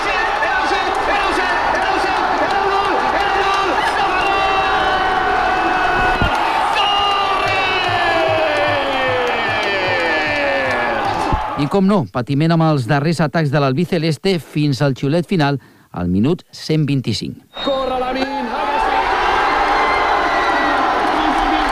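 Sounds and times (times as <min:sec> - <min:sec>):
football fans cheering and celebrating: 0:00.0 - 0:11.9, 0:17.6 - 0:21.7
speech: 0:11.6 - 0:18.2.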